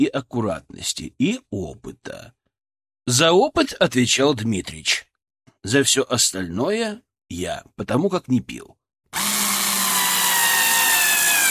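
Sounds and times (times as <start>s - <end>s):
speech: 0.0s - 2.4s, 3.1s - 9.3s
power screwdriver driving a self-tapping screw into laminated chipboard: 9.2s - 11.4s.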